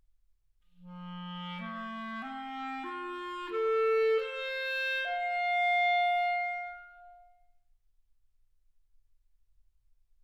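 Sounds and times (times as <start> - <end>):
clarinet: 0.7 - 7.4.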